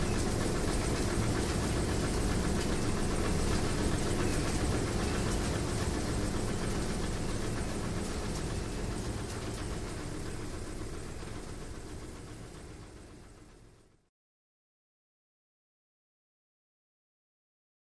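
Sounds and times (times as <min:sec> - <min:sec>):
ski chair lift motor running constantly: 0:00.0 - 0:14.1.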